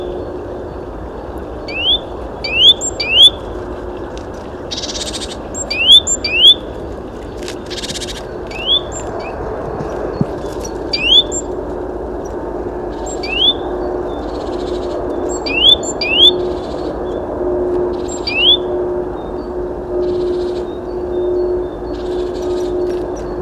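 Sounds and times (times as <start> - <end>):
low steady rumble: 0.0 - 23.3
great tit whistling: 1.7 - 3.4, 4.7 - 6.8, 7.7 - 9.4, 10.2 - 11.6, 13.0 - 13.6, 15.2 - 16.9, 17.9 - 23.3.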